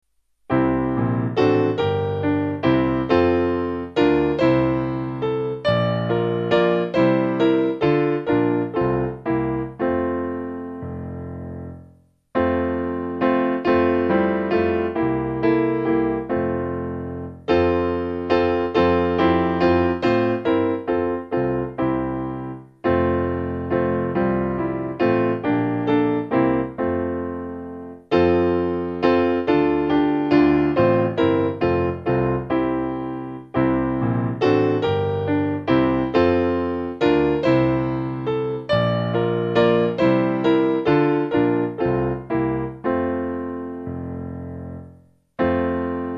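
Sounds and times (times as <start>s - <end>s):
piano: 0.0s - 46.1s.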